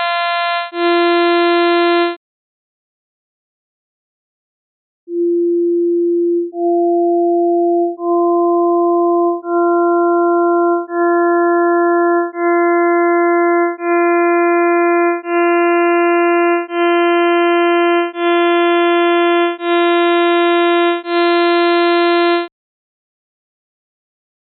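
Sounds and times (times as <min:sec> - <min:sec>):
sawtooth wave built from harmonics: 0:00.1 - 0:02.2, 0:06.3 - 0:22.5.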